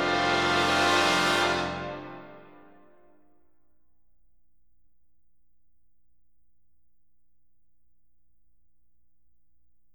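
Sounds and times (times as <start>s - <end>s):
brass ensemble fanfare: 0.0s - 2.4s.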